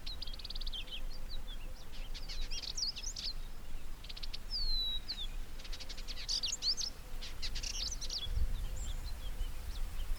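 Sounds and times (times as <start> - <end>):
variable indigobird Vidua funera song with whistled slurs and buzzy chatter: 0.0 - 10.1.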